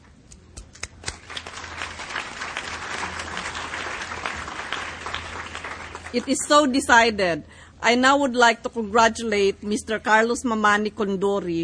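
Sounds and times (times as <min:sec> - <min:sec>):
applause from forum members electing officers by acclamation: 0:00.8 - 0:06.9
speech: 0:06.1 - 0:11.6.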